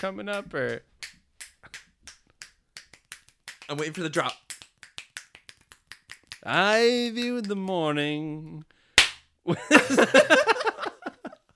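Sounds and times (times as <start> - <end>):
speech: 0.0 - 1.8, 3.7 - 4.4, 6.4 - 8.8, 9.5 - 10.9
hand clap for syncing video and audio: 0.0 - 7.9, 9.0 - 9.3
laughter: 9.5 - 11.4.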